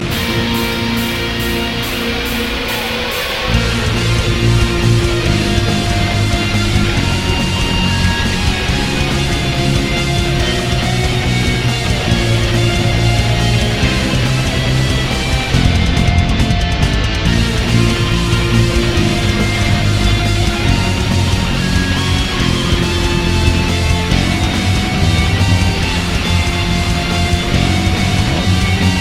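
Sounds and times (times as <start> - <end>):
metal remix: 0.0 - 29.0.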